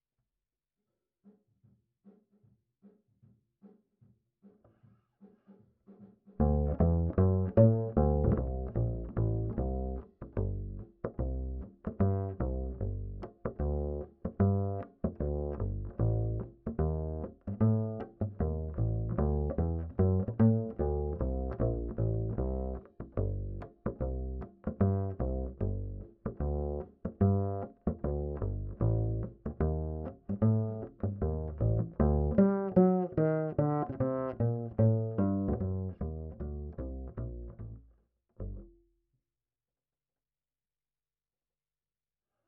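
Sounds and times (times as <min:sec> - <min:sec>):
ragtime bass line: 0:06.4 - 0:38.7.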